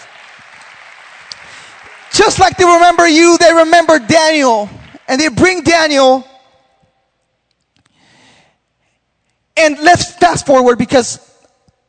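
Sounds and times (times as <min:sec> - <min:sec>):
audience round of applause: 0:00.0 - 0:05.3
speech: 0:02.2 - 0:06.3, 0:09.6 - 0:11.3.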